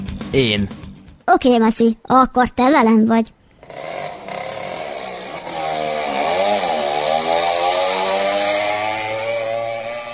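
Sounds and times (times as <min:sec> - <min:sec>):
speech: 0:00.3 - 0:04.1
fiery red Porsche engine roaring as it approaches: 0:03.6 - 0:10.1.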